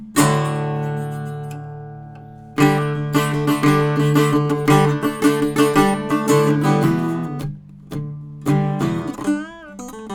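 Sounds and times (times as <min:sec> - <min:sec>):
harmony in E minor: 0:00.3 - 0:09.4.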